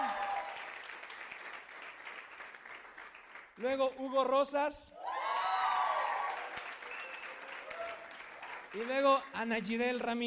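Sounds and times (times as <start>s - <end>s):
audience applause: 0.0s - 3.6s, 5.1s - 9.3s
speech: 3.6s - 5.0s, 8.7s - 10.2s.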